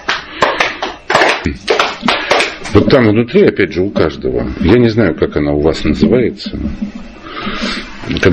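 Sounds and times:
people standing up clapping hands on instruction: 0.0 - 2.8
speech: 1.4 - 1.8, 2.7 - 8.3.

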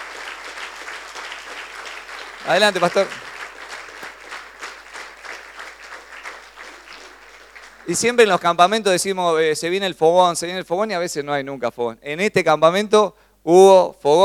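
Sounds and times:
audience applauding: 0.0 - 8.7
speech: 2.4 - 3.2, 7.9 - 14.2.

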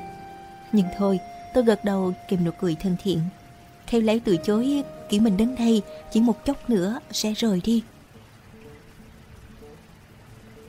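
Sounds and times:
rain falling: 0.0 - 10.6
speech: 0.7 - 7.9.

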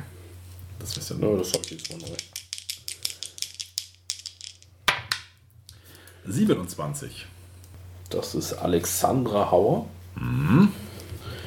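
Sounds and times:
speech: 0.8 - 2.4, 6.3 - 7.4, 8.1 - 10.8
dice being rolled: 0.9 - 5.3.

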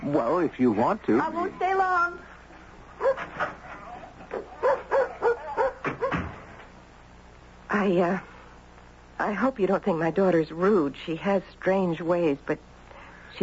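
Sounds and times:
speech: 0.1 - 2.3, 7.7 - 8.3, 9.2 - 12.7
dog barking: 3.0 - 6.3.

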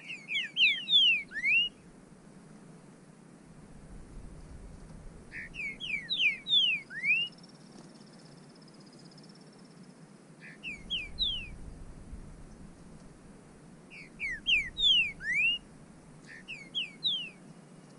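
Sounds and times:
bird whistling calls: 0.0 - 1.8, 5.2 - 7.4, 10.4 - 11.7, 13.9 - 17.4.

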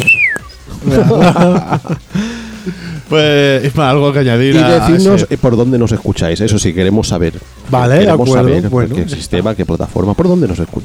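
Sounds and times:
whistled imitation of a bird chirping: 0.0 - 0.6
laughter: 0.7 - 3.1
speech: 0.9 - 10.8.

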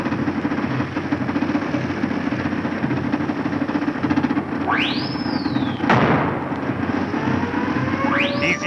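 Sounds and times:
Junkers 13 airplane engine drone: 0.0 - 8.6
rising and falling whistle: 4.6 - 6.0, 6.9 - 8.6
sudden sharp bang: 4.6 - 7.0.

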